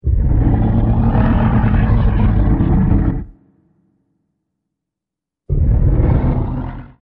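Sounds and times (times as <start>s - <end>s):
Tyrannosaurus rex roaring: 0.0s - 3.5s, 5.5s - 7.0s.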